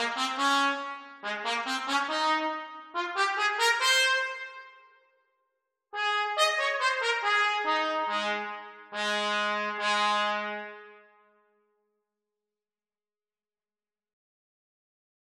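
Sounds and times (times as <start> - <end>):
trumpet duets: 0.0 - 4.9, 6.0 - 11.1.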